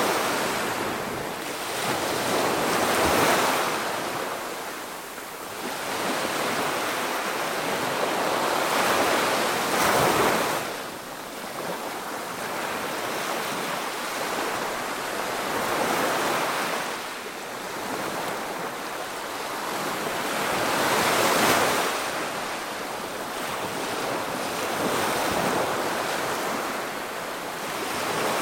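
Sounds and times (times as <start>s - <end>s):
medium waves in the ocean: 0.0s - 28.3s.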